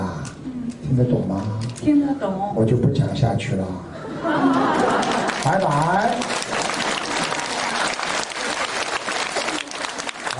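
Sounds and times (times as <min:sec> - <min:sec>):
speech: 0:00.9 - 0:04.8, 0:05.4 - 0:06.4
laughter: 0:04.0 - 0:05.9
audience applause: 0:04.4 - 0:10.3.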